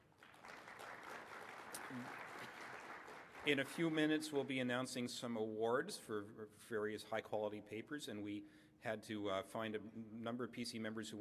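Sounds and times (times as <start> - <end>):
round of applause: 0.0 - 4.7
speech: 1.9 - 2.2, 3.4 - 11.1.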